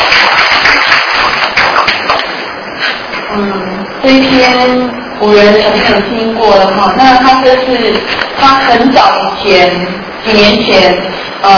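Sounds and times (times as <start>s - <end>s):
group of listeners clapping for a teacher: 0.0s - 2.4s
speech: 3.4s - 11.5s.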